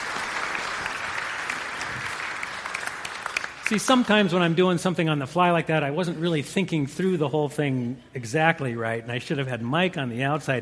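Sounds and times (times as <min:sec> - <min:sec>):
audience applause: 0:00.0 - 0:04.8
speech: 0:03.7 - 0:10.6.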